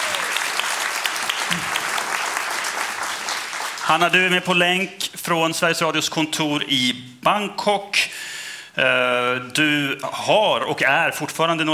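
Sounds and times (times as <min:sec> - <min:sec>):
audience applause: 0:00.0 - 0:04.3
speech: 0:03.9 - 0:08.2, 0:08.8 - 0:11.7.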